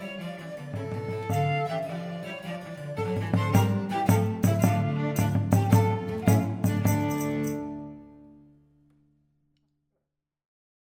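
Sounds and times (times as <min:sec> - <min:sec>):
baroque percussion: 0:00.0 - 0:08.4.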